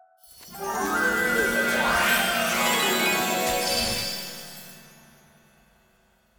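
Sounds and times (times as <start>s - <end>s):
magical fairy nudge sound: 0.3s - 4.8s.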